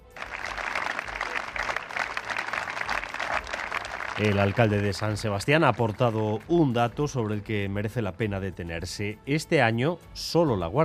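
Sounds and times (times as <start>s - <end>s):
mourners' sustained applause: 0.0s - 6.5s
speech: 4.2s - 10.8s.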